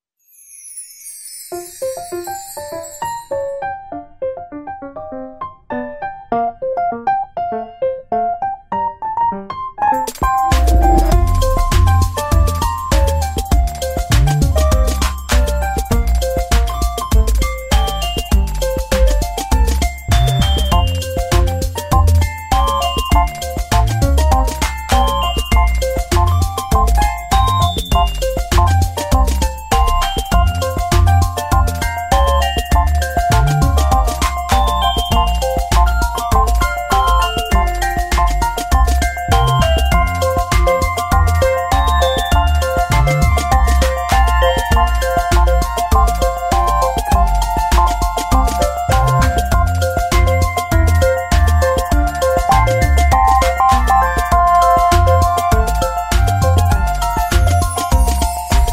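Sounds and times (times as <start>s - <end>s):
cute lively happy vlog background music: 1.1s - 58.7s.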